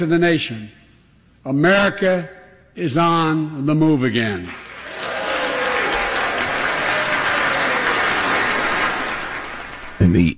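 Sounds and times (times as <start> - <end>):
speech: 0.0 - 0.8, 1.4 - 4.6, 10.0 - 10.3
members of the House applauding: 4.5 - 10.1.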